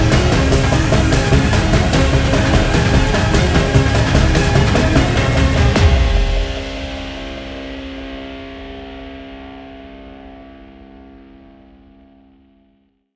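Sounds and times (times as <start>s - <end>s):
violin: 0.0s - 6.6s
guitar: 0.0s - 10.3s.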